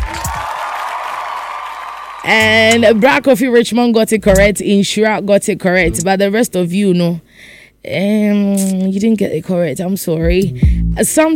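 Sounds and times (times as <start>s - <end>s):
audience clapping: 0.0s - 3.0s
speech: 2.2s - 11.3s.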